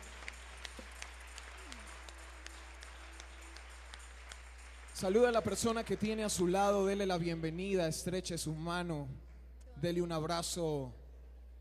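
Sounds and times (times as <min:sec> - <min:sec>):
audience applause: 0:00.0 - 0:07.4
speech: 0:05.0 - 0:11.0.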